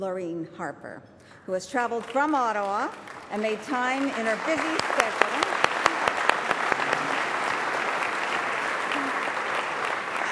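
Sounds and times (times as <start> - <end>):
speech: 0.0 - 5.7
crowd clapping: 1.8 - 10.2.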